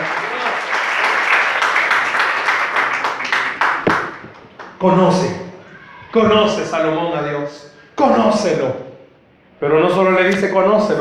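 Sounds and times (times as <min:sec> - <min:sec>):
audience applause: 0:00.0 - 0:05.3
speech: 0:04.8 - 0:05.4, 0:06.1 - 0:08.8, 0:09.6 - 0:10.9.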